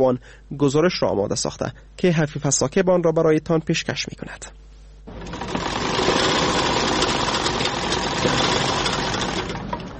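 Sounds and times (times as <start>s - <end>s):
speech: 0.0s - 5.5s, 8.2s - 8.6s
sewing machine running in a tailor's shop: 5.1s - 9.8s.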